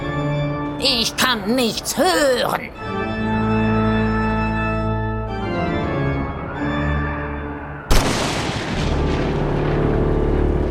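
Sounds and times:
sustained organ chords: 0.0 - 0.8, 2.7 - 10.6
speech: 0.8 - 3.0
lightning crack: 7.9 - 10.6
thunder rumbling: 7.9 - 10.6.

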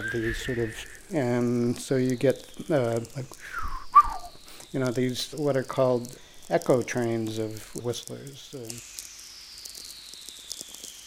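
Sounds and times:
natural radio whistler echo train: 0.0 - 5.2
man talking: 0.0 - 8.8.

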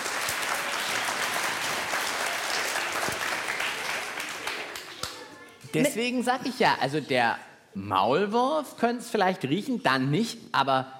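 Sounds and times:
audience applause: 0.0 - 5.4
speech: 5.7 - 10.9.

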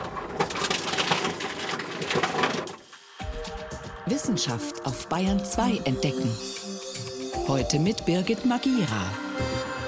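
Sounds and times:
reverse vending machine crushing plastic bottles: 0.0 - 3.1
speech: 4.1 - 6.5, 7.5 - 9.7.

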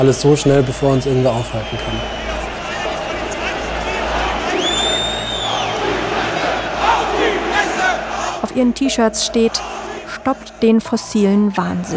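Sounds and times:
speech: 0.0 - 2.3, 8.6 - 11.9
hundreds of people yelling in a stadium: 0.0 - 11.9
shrill whistle-like tone: 1.0 - 2.5, 4.5 - 5.9.

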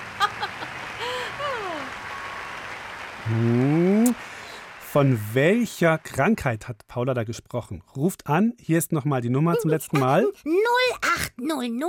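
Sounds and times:
laughter: 0.0 - 2.0, 9.6 - 10.3
audience applause: 0.0 - 6.6
speech: 3.3 - 3.7, 5.0 - 11.8.

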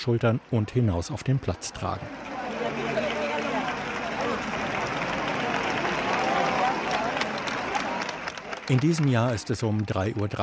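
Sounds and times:
speech: 0.0 - 2.4, 8.7 - 10.4
crowd cheering at a religious procession: 0.0 - 10.4.

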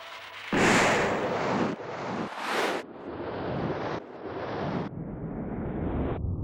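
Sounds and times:
firing squad rifle volley: 0.5 - 1.8
roaring rush: 0.5 - 6.3.

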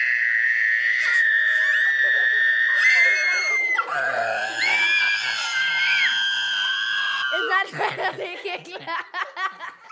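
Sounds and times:
children screaming into a glass: 0.0 - 7.8
children giggly squeals: 4.6 - 6.1, 7.3 - 9.9.

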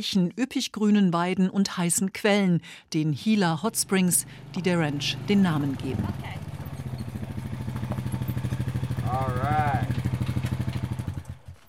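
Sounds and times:
speech: 0.0 - 6.4
quad bike rattling into a dusty ranch yard in the Gila Wilderness: 3.6 - 11.6.

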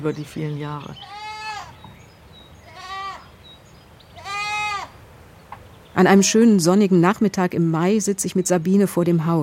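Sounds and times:
speech: 0.0 - 1.2, 6.0 - 9.4
hiss: 0.0 - 7.2
bottle-raised goat kids bleating: 0.9 - 1.9, 2.6 - 3.4, 4.1 - 5.0.

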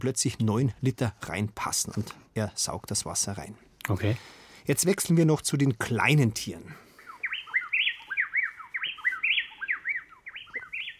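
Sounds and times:
speech: 0.0 - 6.9
chestnut-backed wren pair from Ecuador singing duet: 6.8 - 10.9.

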